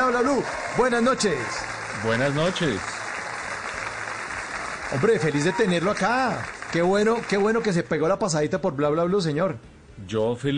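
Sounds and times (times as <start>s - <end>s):
audience applause: 0.0s - 7.9s
speech: 0.1s - 3.0s, 4.9s - 10.5s.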